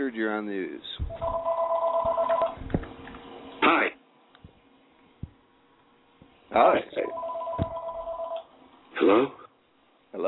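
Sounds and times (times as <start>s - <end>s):
speech: 0.0s - 2.8s, 6.6s - 7.3s, 9.0s - 9.4s
telephone ringing in background: 1.1s - 2.6s, 7.0s - 8.5s.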